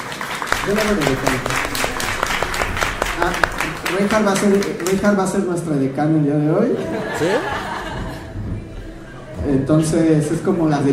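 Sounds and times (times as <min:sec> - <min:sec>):
audience applause: 0:00.0 - 0:05.6
speech: 0:00.7 - 0:01.9, 0:03.2 - 0:07.6, 0:09.5 - 0:10.9
laughter: 0:06.6 - 0:08.5.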